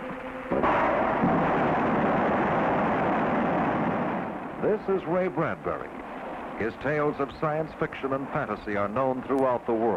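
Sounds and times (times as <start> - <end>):
rocket engine test firing: 0.5 - 7.3
speech: 4.6 - 9.9.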